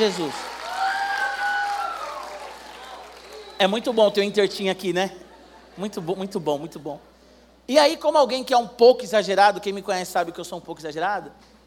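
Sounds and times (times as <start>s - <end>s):
speech: 0.0s - 0.5s, 3.6s - 7.1s, 7.7s - 11.6s
audience applause: 0.0s - 3.9s
person whooping: 0.6s - 3.6s.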